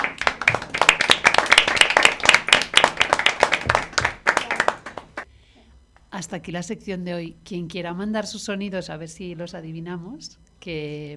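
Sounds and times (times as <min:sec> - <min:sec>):
applause: 0:00.0 - 0:05.3
speech: 0:06.2 - 0:11.1.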